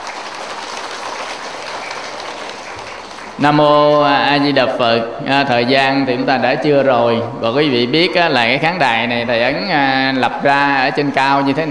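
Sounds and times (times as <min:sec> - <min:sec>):
audience applause: 0:00.0 - 0:04.5
speech: 0:03.4 - 0:11.6.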